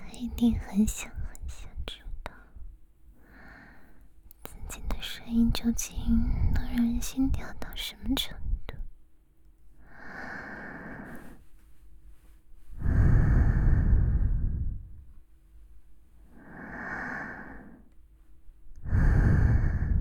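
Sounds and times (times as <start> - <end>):
speech: 0.2 - 2.0, 5.2 - 8.4
breathing close to the ear: 2.4 - 4.1, 9.8 - 11.6, 12.7 - 15.0, 16.3 - 17.9, 18.8 - 20.0.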